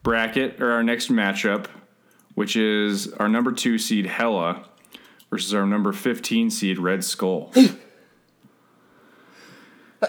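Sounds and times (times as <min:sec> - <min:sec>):
speech: 0:00.0 - 0:01.8, 0:02.4 - 0:04.7, 0:05.3 - 0:07.9
sneeze: 0:07.5 - 0:07.9.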